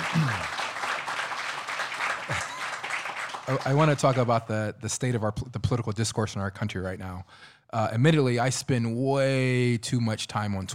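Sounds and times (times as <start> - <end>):
audience clapping: 0.0 - 4.5
speech: 3.5 - 10.7.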